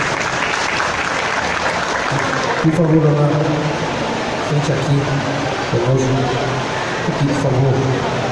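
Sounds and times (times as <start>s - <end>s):
round of applause: 0.0s - 3.3s
speech: 2.6s - 3.8s, 4.5s - 8.2s.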